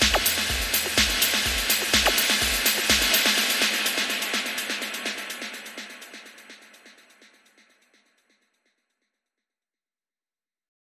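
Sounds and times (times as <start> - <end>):
bass: 0.0 - 3.1
vocals: 0.0 - 7.2
drums: 0.0 - 7.7.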